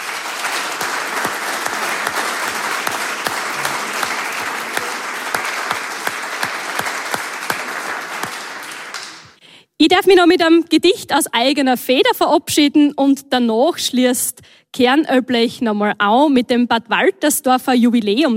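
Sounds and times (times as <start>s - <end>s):
applause from the stage to the audience: 0.0s - 9.4s
speech: 9.8s - 18.3s.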